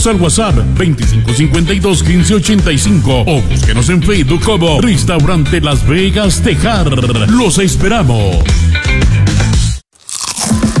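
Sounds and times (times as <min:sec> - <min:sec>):
speech: 0:00.0 - 0:09.2
red original chips crunching as bitten and chewed: 0:10.0 - 0:10.7.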